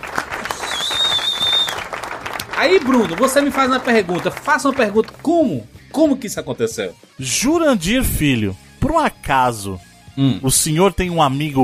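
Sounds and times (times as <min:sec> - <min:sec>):
applause: 0:00.0 - 0:05.6
speech: 0:02.6 - 0:11.6.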